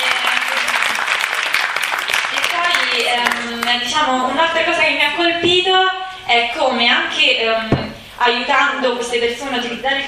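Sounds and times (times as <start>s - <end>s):
audience applause: 0.0s - 3.5s
speech: 3.7s - 10.0s.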